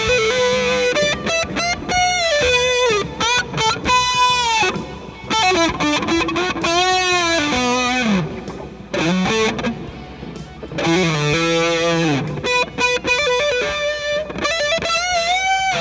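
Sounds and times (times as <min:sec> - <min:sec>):
Twin Reverb amplifier at high volume with Big Muff fuzz: 0:00.0 - 0:15.7.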